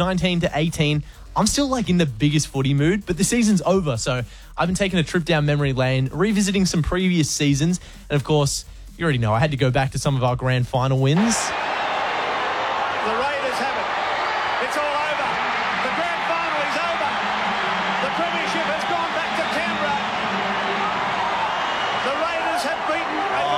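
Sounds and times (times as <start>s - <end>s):
speech: 0.0s - 11.7s
grand final football crowd cheering: 11.2s - 23.5s.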